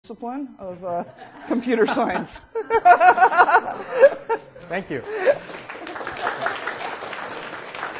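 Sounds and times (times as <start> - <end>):
speech: 0.0 - 5.6
laughter: 1.1 - 7.5
audience applause: 5.1 - 7.9.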